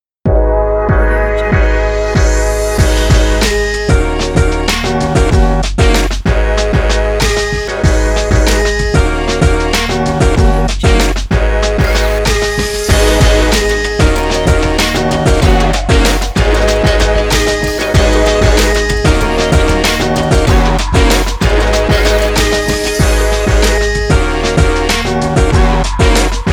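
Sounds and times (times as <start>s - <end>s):
energetic fashion hip hop logo jingle: 0.3s - 26.5s.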